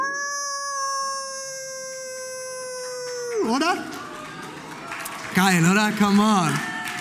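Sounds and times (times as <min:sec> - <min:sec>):
person imitating a wolf howl: 0:00.0 - 0:03.8
speech: 0:03.4 - 0:04.0, 0:05.4 - 0:06.7.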